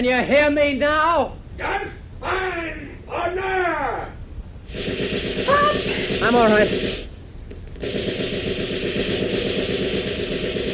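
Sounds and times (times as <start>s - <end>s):
speech: 0.0s - 4.1s, 4.7s - 7.1s, 7.8s - 9.0s
rapid gunfire into a sofa pillow in a radio drama: 4.7s - 7.1s, 7.8s - 10.7s.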